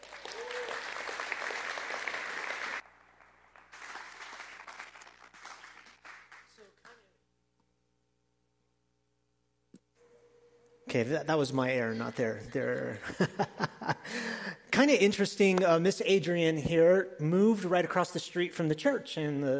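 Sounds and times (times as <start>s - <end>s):
crowd applause: 0.0s - 7.0s
low steady hum: 7.2s - 13.9s
speech: 10.9s - 19.5s
laughter: 12.6s - 14.6s.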